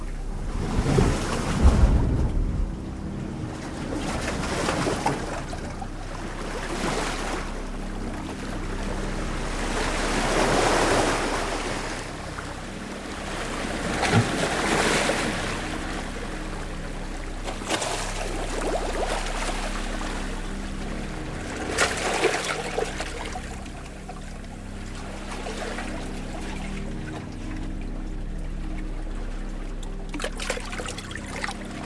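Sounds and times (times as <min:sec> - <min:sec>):
ocean waves: 0:00.0 - 0:31.8.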